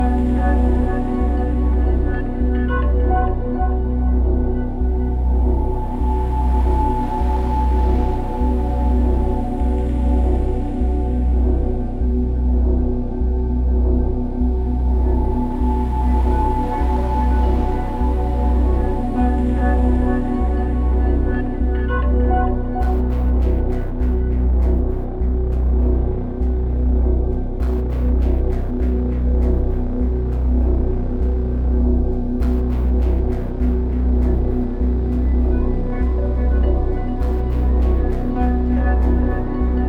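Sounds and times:
darkest music loop: 0.0 - 39.8.

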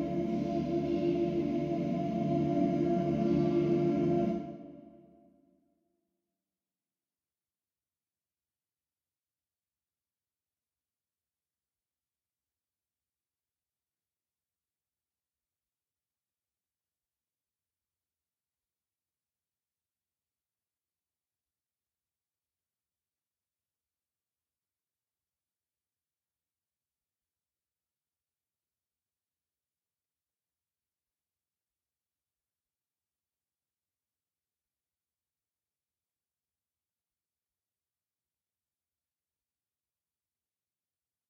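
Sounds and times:
dark calm ambience: 0.0 - 4.9.

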